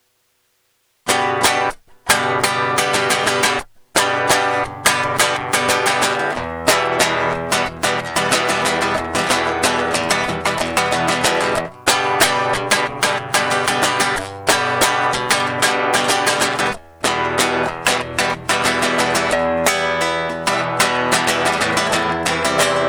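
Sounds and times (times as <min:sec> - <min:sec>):
acoustic guitar: 0:01.0 - 0:22.8.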